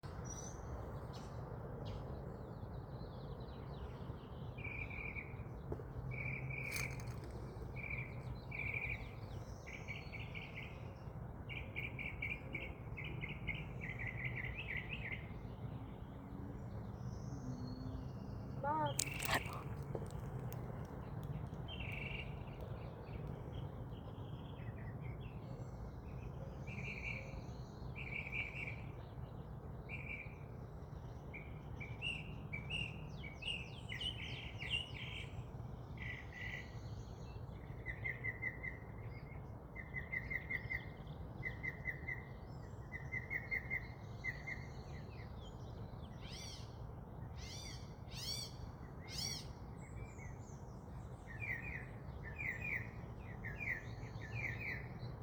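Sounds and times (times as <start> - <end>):
birds: 0.0 - 55.2.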